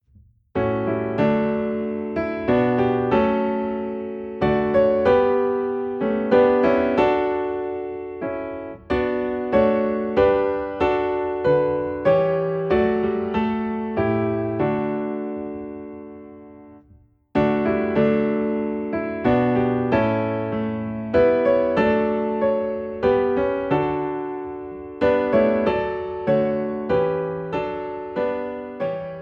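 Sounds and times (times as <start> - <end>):
piano piece in D: 0.6 - 29.2.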